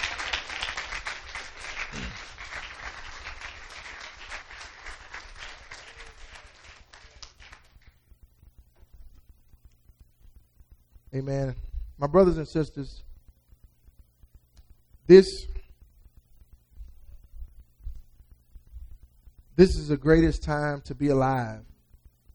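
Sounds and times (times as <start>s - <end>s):
audience hand clapping: 0.0s - 8.1s
speech: 11.2s - 13.0s, 15.1s - 15.5s, 19.6s - 21.7s.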